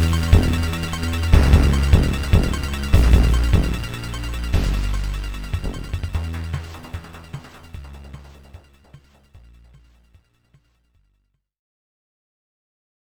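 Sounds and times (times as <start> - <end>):
metal music: 0.0 - 10.0.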